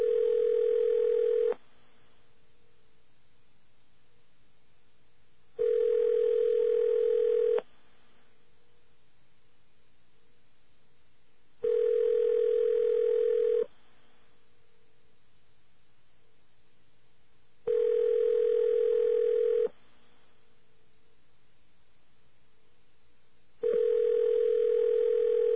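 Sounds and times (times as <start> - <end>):
telephone ringing: 0.0 - 1.6, 5.6 - 7.6, 11.6 - 13.7, 17.7 - 19.7, 23.6 - 25.5.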